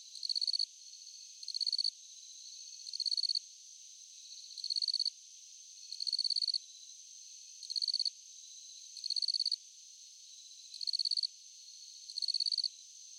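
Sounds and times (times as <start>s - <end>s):
crickets at night: 0.0s - 13.1s.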